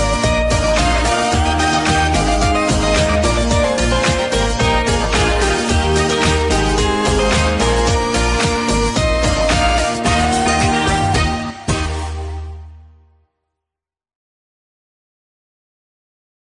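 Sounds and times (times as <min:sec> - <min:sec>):
forest party background music: 0:00.0 - 0:12.9.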